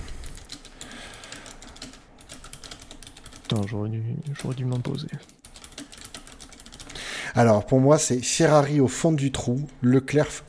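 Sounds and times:
fast typing on a computer keyboard: 0.0s - 7.0s
speech: 3.5s - 5.4s, 7.4s - 10.4s.

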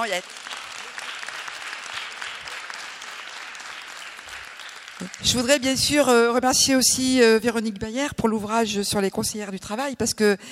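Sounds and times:
speech: 0.0s - 0.5s, 5.0s - 10.5s
audience applause: 0.0s - 5.8s.

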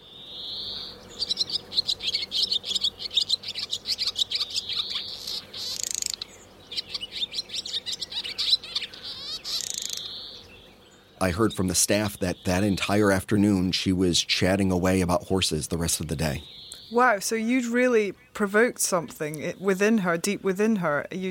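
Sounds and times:
recorded bird call played from toy bird model: 0.0s - 21.2s
speech: 11.3s - 21.2s.

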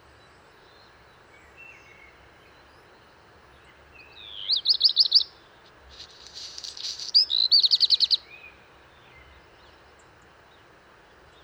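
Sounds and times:
Black redstart singing: 4.0s - 5.3s, 5.9s - 8.5s.

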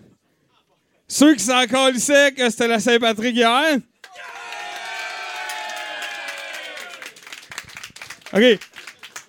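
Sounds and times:
speech: 1.1s - 3.9s, 8.4s - 8.6s
audience applause: 4.0s - 9.2s
audience cheering and whooping: 4.1s - 7.6s.

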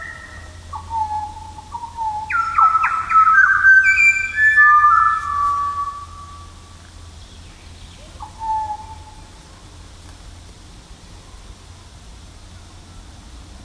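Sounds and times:
pied butcherbird singing: 0.0s - 6.6s, 8.1s - 9.2s.

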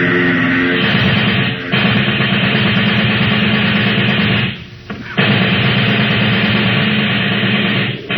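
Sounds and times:
plane engine roaring: 0.0s - 6.0s
submachine gun firing at a plane: 0.8s - 8.1s.

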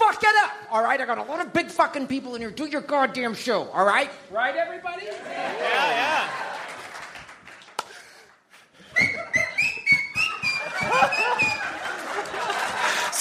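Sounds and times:
speech: 0.7s - 6.4s
audience laughter in a comedy club: 5.2s - 7.0s, 10.2s - 13.1s
person whistling in a comedy club: 8.8s - 11.7s.

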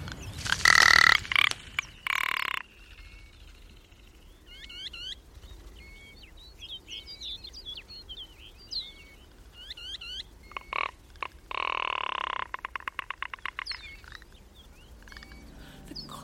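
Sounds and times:
ptarmigan giving croaking rattles: 0.4s - 2.8s, 10.1s - 15.5s.

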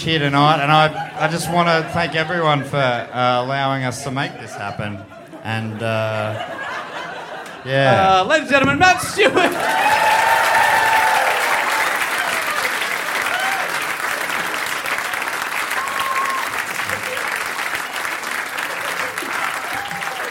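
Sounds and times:
speech: 0.0s - 6.7s, 7.6s - 10.2s
laughter: 0.3s - 10.5s, 15.8s - 20.3s
audience applause: 9.4s - 20.3s.

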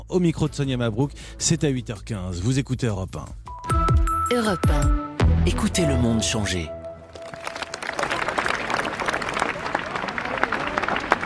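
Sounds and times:
speech: 0.1s - 3.5s, 4.3s - 6.8s
applause: 7.1s - 11.2s.

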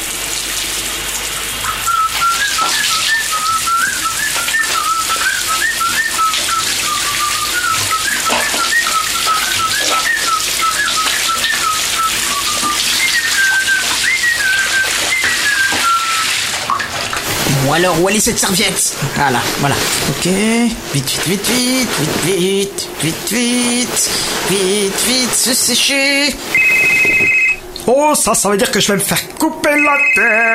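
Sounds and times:
shower running: 0.0s - 29.3s
speech: 17.8s - 27.2s, 27.9s - 30.5s.

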